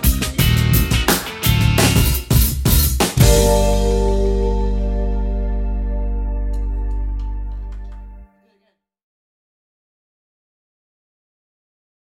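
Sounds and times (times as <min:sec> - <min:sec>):
music: 0:00.0 - 0:08.6.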